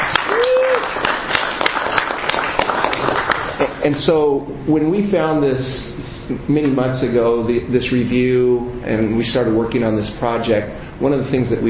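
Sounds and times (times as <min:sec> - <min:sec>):
audience applause: 0:00.0 - 0:03.8
speech: 0:03.9 - 0:11.6.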